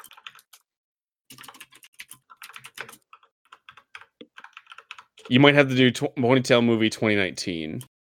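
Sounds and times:
typing a web search on a computer keyboard: 0:00.0 - 0:00.6, 0:01.3 - 0:05.3
speech: 0:05.3 - 0:07.9.

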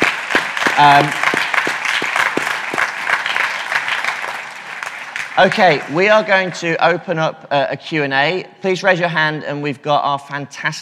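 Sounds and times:
audience applause: 0:00.0 - 0:06.6
speech: 0:00.8 - 0:01.2, 0:05.4 - 0:10.7.

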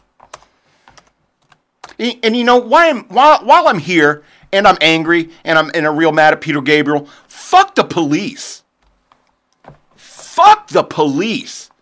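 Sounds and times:
typing on a computer keyboard: 0:00.0 - 0:02.0, 0:08.8 - 0:10.0
speech: 0:02.0 - 0:08.6, 0:10.4 - 0:11.7.

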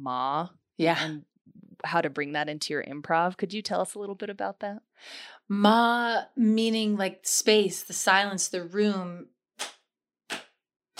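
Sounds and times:
speech: 0:00.0 - 0:09.8
hands clapping: 0:09.6 - 0:10.9.

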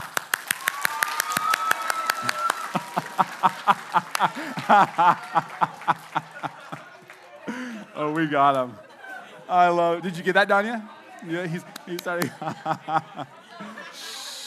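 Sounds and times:
crowd group clapping hands: 0:00.0 - 0:08.3, 0:11.3 - 0:13.3
laughter: 0:02.2 - 0:10.3, 0:11.2 - 0:14.4
speech: 0:03.7 - 0:06.0, 0:08.2 - 0:08.9, 0:09.5 - 0:13.4.

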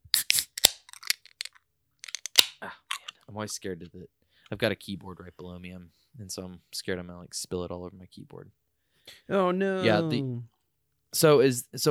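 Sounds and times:
bottle of imperial stout being opened: 0:00.0 - 0:03.2
speech: 0:03.4 - 0:11.8.

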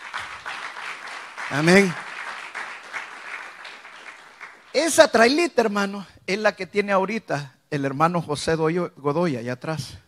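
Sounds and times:
audience applause: 0:00.0 - 0:04.8
speech: 0:01.5 - 0:02.0, 0:04.8 - 0:10.0.

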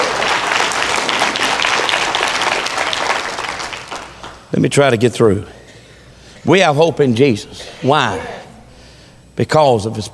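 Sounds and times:
audience clapping: 0:00.0 - 0:04.5
speech: 0:04.5 - 0:05.6, 0:06.4 - 0:08.4, 0:09.4 - 0:10.1.

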